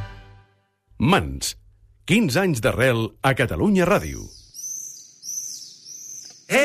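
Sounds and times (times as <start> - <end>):
speech: 1.0 - 4.4
swallow singing in its nest: 4.1 - 6.5.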